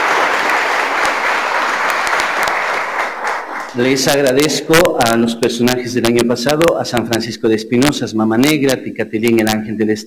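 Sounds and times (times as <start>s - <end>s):
audience applause: 0.0s - 4.2s
speech: 3.8s - 10.0s.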